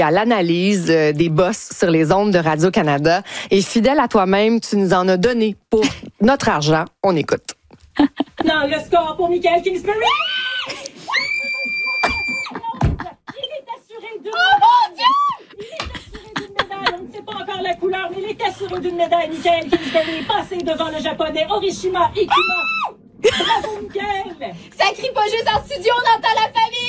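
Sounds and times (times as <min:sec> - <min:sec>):
speech: 0:00.0 - 0:11.8, 0:16.7 - 0:26.8
laughter: 0:08.0 - 0:08.7, 0:10.7 - 0:13.7, 0:14.4 - 0:17.4, 0:23.2 - 0:23.9
excited screaming and cheering for a medal: 0:10.1 - 0:12.6.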